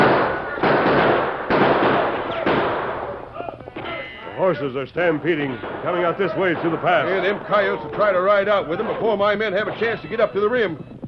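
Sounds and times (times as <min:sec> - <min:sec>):
gunshots in a shootout: 0:00.0 - 0:03.4, 0:05.0 - 0:10.5
speech: 0:04.5 - 0:10.9.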